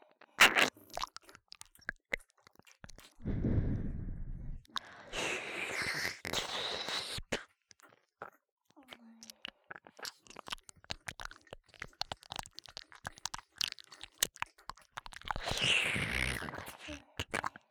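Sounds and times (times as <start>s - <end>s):
ear licking: 0.4s - 8.4s, 9.2s - 17.6s
sucking sounds: 3.2s - 7.4s, 15.3s - 17.6s.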